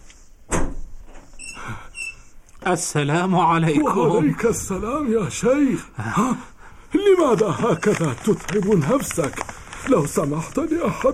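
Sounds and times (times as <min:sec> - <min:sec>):
door opening: 0:00.5 - 0:02.3
speech: 0:02.7 - 0:11.1.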